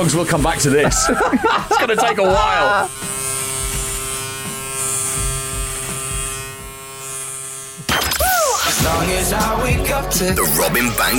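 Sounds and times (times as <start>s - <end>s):
speech: 0.0s - 3.2s, 8.9s - 11.1s
electric razor shaving: 0.0s - 11.1s
laughter: 0.6s - 2.9s.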